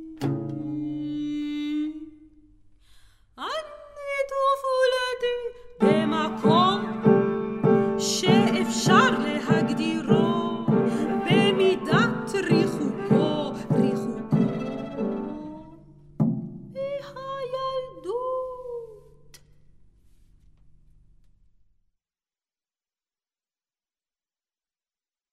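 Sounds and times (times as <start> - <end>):
oud: 0.0 - 1.4, 5.8 - 15.8
soprano singing: 0.0 - 2.2, 3.4 - 15.9, 16.8 - 19.1
cello: 5.8 - 16.0
piano: 5.8 - 17.9.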